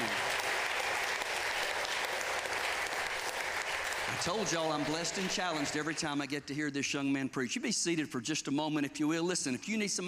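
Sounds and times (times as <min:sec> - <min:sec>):
audience applauding: 0:00.0 - 0:06.2
speech: 0:04.2 - 0:10.0.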